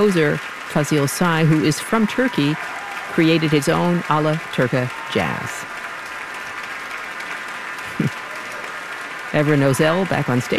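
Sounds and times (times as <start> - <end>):
speech: 0.0 - 5.7, 9.3 - 10.5
orchestra players clapping: 0.0 - 10.5.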